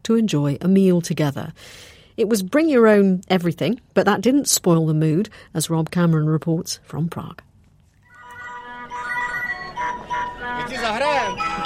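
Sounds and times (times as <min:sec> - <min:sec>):
speech: 0:00.1 - 0:07.5
music at an outdoor meal: 0:08.1 - 0:11.6.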